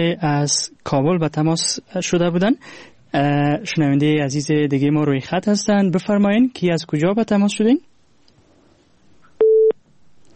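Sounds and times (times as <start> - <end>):
speech: 0.0 - 7.9
telephone busy tone on a phone-in line after a dropped call: 9.4 - 9.8.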